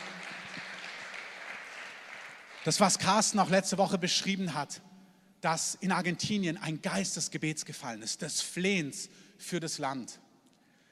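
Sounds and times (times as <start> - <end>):
audience applause: 0.0 - 2.7
speech: 2.6 - 10.2.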